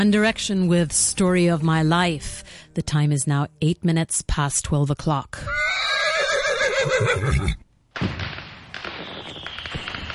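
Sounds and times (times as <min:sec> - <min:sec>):
speech: 0:00.0 - 0:05.9, 0:06.8 - 0:08.2
horse whinnying: 0:05.4 - 0:07.7.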